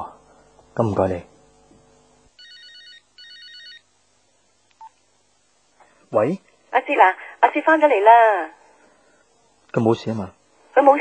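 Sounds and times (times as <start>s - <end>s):
speech: 0.8s - 1.3s, 6.1s - 8.6s, 9.7s - 10.9s
telephone ringing: 2.4s - 3.9s.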